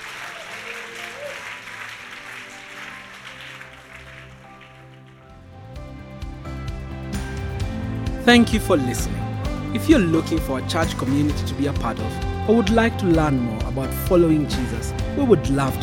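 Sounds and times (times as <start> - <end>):
audience applause: 0.0 - 5.6
speech: 8.2 - 15.8.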